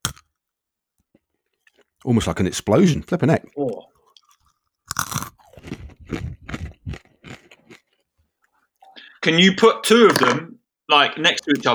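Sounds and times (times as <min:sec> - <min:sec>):
crunching a crisp snack: 0:00.0 - 0:00.3, 0:03.6 - 0:08.1
speech: 0:02.0 - 0:03.9, 0:09.2 - 0:11.7.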